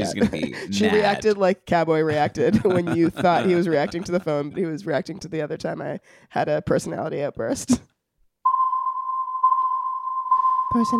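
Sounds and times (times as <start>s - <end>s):
laughter: 0.0s - 1.3s, 2.1s - 5.0s
speech: 0.1s - 7.9s, 10.7s - 10.9s
homemade submarine sonar sound effect tone: 8.4s - 10.9s.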